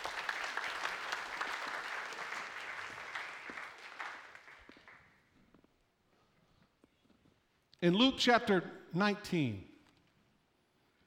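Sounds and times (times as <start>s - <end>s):
audience applause: 0.0s - 5.1s
speech: 7.8s - 9.7s.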